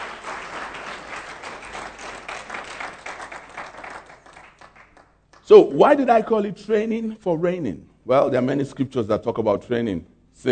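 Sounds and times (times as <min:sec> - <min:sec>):
audience clapping: 0:00.0 - 0:05.5
speech: 0:05.5 - 0:10.5.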